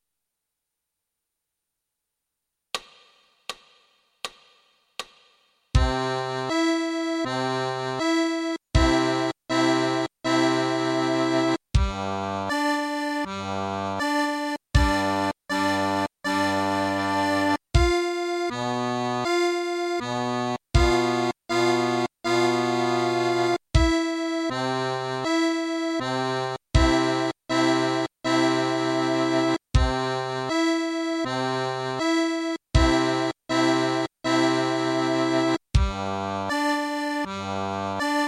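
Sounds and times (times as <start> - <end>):
accordion played with the right hand: 5.8 - 38.2.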